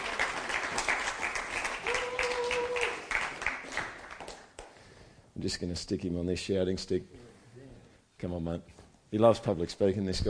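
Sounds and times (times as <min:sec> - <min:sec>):
audience applause: 0:00.0 - 0:04.4
speech: 0:05.4 - 0:07.2, 0:08.2 - 0:10.2.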